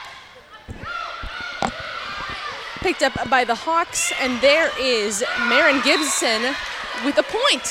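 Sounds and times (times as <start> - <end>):
volleyball serve thumps in a Penguins versus Hawks match: 0.6 - 3.6
speech: 2.8 - 7.7.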